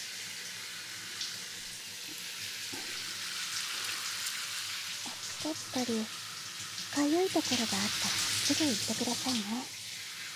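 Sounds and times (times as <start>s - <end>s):
shower water running during hair wash: 0.0s - 10.3s
speech: 5.4s - 6.2s, 7.0s - 9.8s.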